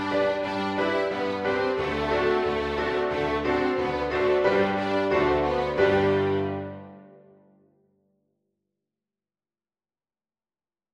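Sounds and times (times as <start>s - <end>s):
piano backing track: 0.0s - 7.4s
violin: 0.0s - 7.4s.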